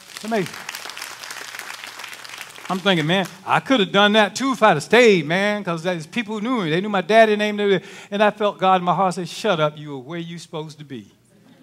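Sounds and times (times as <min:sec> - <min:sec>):
audience clapping hands: 0:00.0 - 0:03.9
speech: 0:00.2 - 0:00.7, 0:02.7 - 0:11.2.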